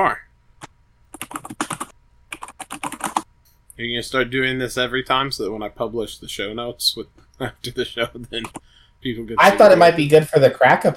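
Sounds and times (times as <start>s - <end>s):
speech: 0.0s - 0.2s, 3.8s - 10.9s
typing show notes on a computer keyboard: 1.1s - 3.3s.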